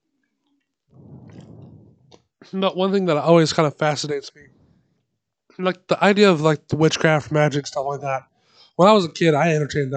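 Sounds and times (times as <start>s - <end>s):
person gulping water: 0.9s - 2.3s
speech: 2.4s - 4.6s, 5.6s - 9.9s.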